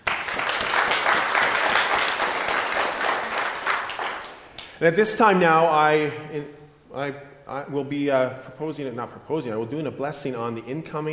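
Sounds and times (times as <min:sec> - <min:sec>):
crowd applause: 0:00.0 - 0:04.7
speech: 0:04.8 - 0:11.1.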